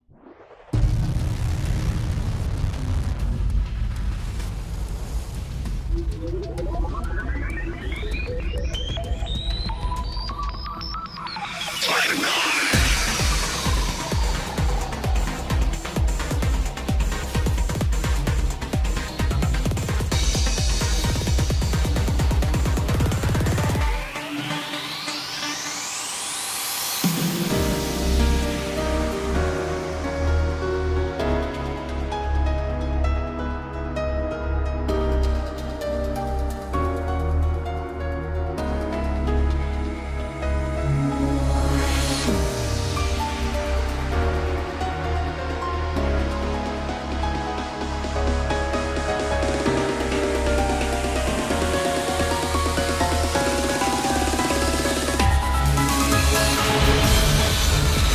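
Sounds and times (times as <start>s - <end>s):
cinematic trailer music: 0.0s - 58.1s.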